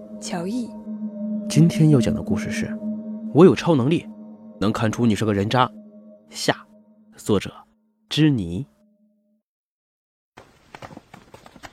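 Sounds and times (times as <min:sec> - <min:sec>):
steady tone: 0:00.0 - 0:09.4
speech: 0:00.2 - 0:00.8, 0:01.5 - 0:06.6, 0:07.2 - 0:08.7.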